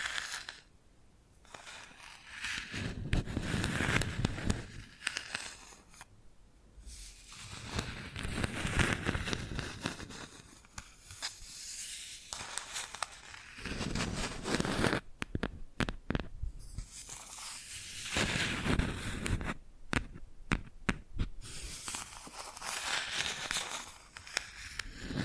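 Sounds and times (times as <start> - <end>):
bamboo being scratched and brushed: 0.0 - 0.7, 1.4 - 6.1, 6.9 - 15.1, 16.6 - 19.6, 21.4 - 25.2
sharp taps and clicks: 15.2 - 16.3, 19.2 - 21.4.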